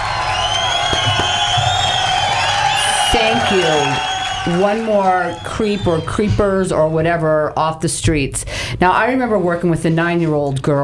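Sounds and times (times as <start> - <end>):
applause: 0.0 - 6.2
speech: 3.2 - 10.8.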